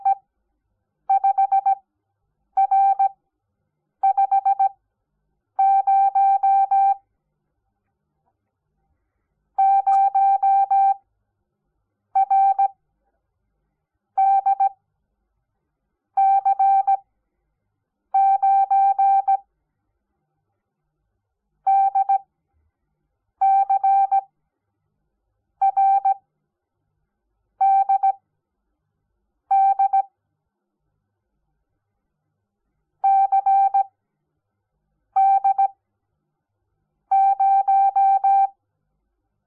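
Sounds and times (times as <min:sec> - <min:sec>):
morse code beeps: 0:00.0 - 0:00.2, 0:01.1 - 0:01.8, 0:02.6 - 0:03.2, 0:04.0 - 0:04.8, 0:05.6 - 0:07.0, 0:09.6 - 0:11.0, 0:12.2 - 0:12.8, 0:14.2 - 0:14.8, 0:16.2 - 0:17.0, 0:18.2 - 0:19.4, 0:21.7 - 0:22.2, 0:23.4 - 0:24.3, 0:25.6 - 0:26.2, 0:27.6 - 0:28.2, 0:29.5 - 0:30.1, 0:33.0 - 0:33.9, 0:35.2 - 0:35.7, 0:37.1 - 0:38.6.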